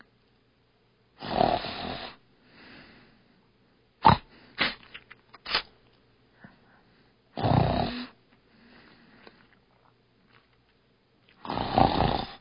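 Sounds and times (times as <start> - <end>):
snoring: 1.2 - 2.2, 7.4 - 8.2, 11.4 - 12.3.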